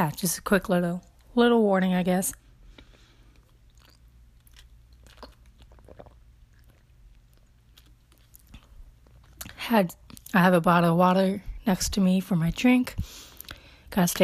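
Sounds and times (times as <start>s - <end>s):
speech: 0.0s - 2.4s, 9.7s - 13.3s, 13.9s - 14.2s
loud chewing while eating: 3.4s - 9.6s.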